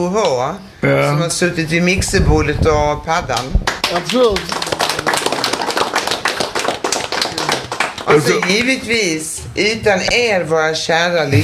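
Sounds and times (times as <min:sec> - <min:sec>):
speech: 0:00.0 - 0:04.6, 0:08.0 - 0:11.4
applause: 0:03.3 - 0:08.8.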